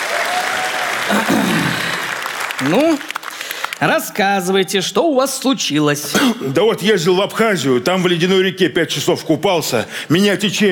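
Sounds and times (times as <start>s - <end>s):
audience applause at a Russian Comedy Club stage show: 0.0s - 4.3s
speech: 1.1s - 1.6s, 2.6s - 3.2s, 3.8s - 10.7s.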